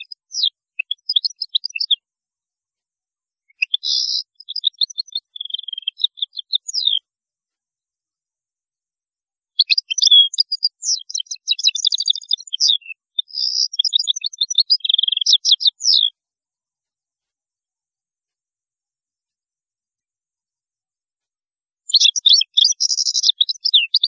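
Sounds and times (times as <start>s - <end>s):
European goldfinch twittering song: 0.0s - 2.0s, 3.6s - 7.0s, 9.6s - 16.1s, 21.9s - 24.0s.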